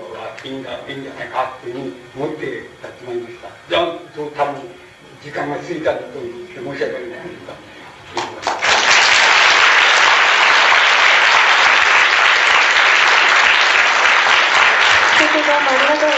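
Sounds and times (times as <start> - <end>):
speech: 0.4 - 7.7
audience applause: 8.4 - 16.1.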